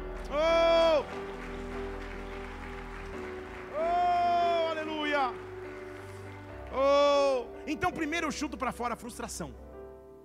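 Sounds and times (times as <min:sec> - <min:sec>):
audience applauding: 0:00.0 - 0:08.0
speech: 0:07.8 - 0:09.7.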